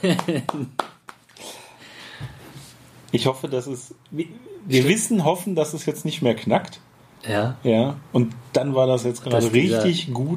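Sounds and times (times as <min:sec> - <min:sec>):
speech: 0:00.0 - 0:00.8, 0:03.1 - 0:10.3
hand clapping: 0:00.0 - 0:01.4.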